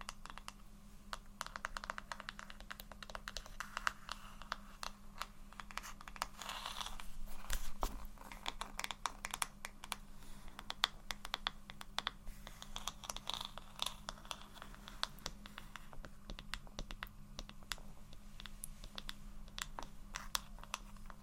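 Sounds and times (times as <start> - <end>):
soft tapping and scratching: 0.0 - 21.2.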